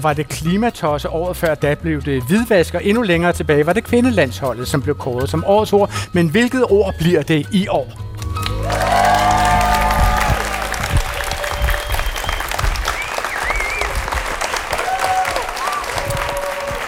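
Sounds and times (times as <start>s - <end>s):
speech: 0.0s - 8.0s
live audience applauding: 8.2s - 16.8s.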